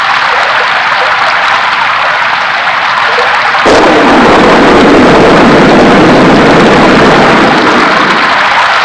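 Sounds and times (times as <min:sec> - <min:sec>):
rain: 0:00.0 - 0:08.8
thunder: 0:03.6 - 0:08.8.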